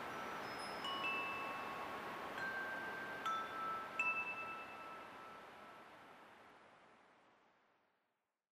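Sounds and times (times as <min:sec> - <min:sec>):
wind chimes: 0:00.0 - 0:06.2.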